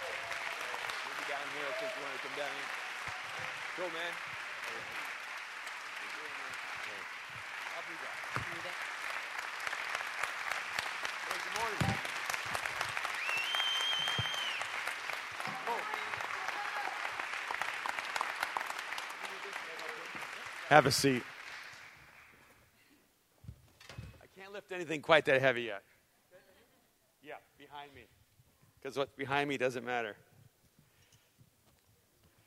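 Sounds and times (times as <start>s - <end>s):
audience applauding a church founder and author: 0.0s - 22.5s
speech: 1.5s - 2.8s, 3.4s - 5.1s, 11.6s - 12.0s, 20.7s - 21.3s, 24.8s - 25.9s, 28.8s - 30.3s.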